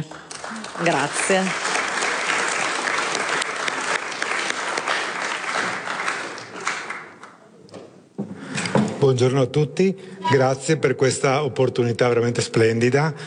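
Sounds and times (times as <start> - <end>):
audience applause: 0.0 - 7.4
speech: 0.8 - 1.7, 9.1 - 13.2.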